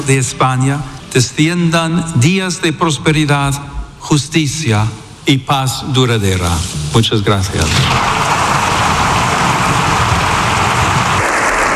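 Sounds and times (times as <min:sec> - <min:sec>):
speech: 0:00.0 - 0:08.4
near-unanimous applause in the Congreso de los Diputados: 0:08.0 - 0:11.7.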